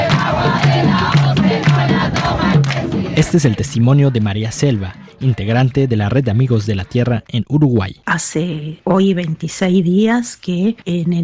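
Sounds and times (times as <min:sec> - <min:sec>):
crowd of protesters chanting: 0:00.0 - 0:03.6
speech: 0:03.2 - 0:11.2.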